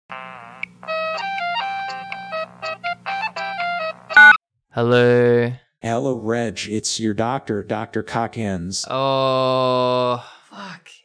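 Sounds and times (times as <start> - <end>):
speech: 0.1 - 0.4, 4.2 - 11.0
phone ringing with bright electronic melody: 0.8 - 4.4.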